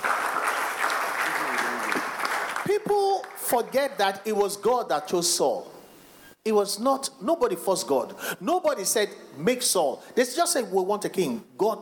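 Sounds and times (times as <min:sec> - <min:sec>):
audience applause: 0:00.0 - 0:03.5
speech: 0:02.7 - 0:05.8, 0:06.4 - 0:11.8.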